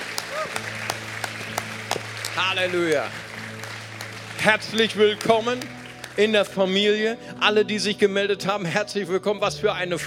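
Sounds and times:
audience applause: 0:00.0 - 0:06.7
speech: 0:02.4 - 0:03.2, 0:04.4 - 0:10.0.

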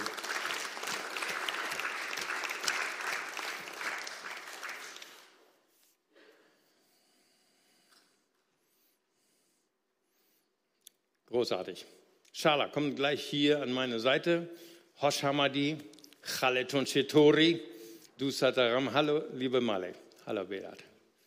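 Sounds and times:
crowd clapping: 0:00.0 - 0:05.4
speech: 0:11.4 - 0:20.9.

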